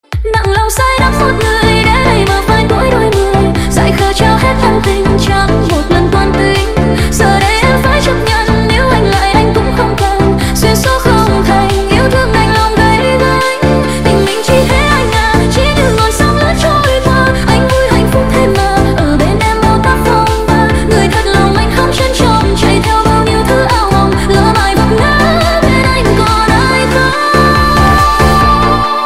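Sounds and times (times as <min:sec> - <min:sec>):
remix music: 0:00.0 - 0:29.0.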